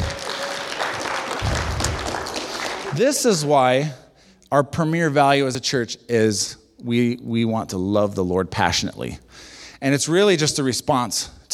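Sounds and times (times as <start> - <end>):
audience clapping: 0.0 - 3.9
speech: 3.0 - 11.5.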